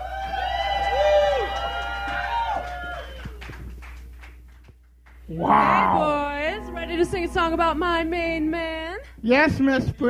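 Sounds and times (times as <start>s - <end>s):
audience whooping to welcome a guest star singer: 0.0s - 3.5s, 5.3s - 6.4s
steady low hum: 2.9s - 10.0s
speech: 5.4s - 6.2s, 7.0s - 10.0s.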